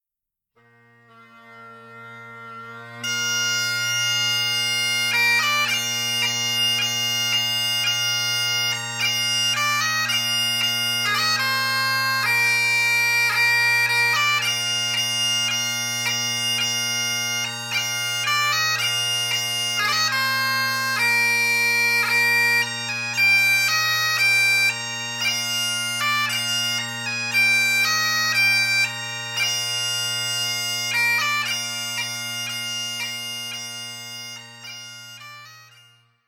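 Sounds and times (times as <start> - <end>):
bagpipes playing a hymn: 0.6 - 36.2.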